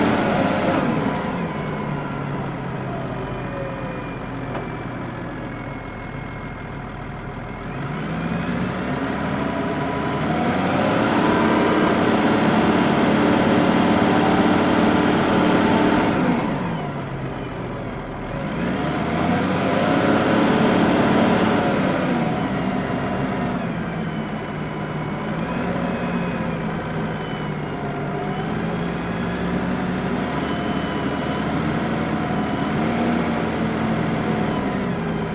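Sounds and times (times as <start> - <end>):
Volvo L90 wheel loader driving recorded onboard: 0.0 - 35.3.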